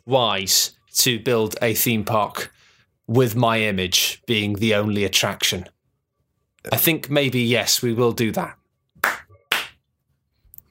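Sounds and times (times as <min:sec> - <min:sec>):
speech: 0:00.1 - 0:05.8, 0:06.6 - 0:08.6
two people clapping hands: 0:09.0 - 0:09.8.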